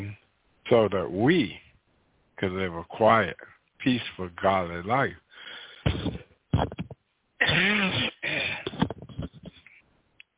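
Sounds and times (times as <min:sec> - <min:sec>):
speech: 0:00.7 - 0:01.6, 0:02.4 - 0:05.2
person coughing: 0:05.8 - 0:06.8, 0:07.4 - 0:09.0.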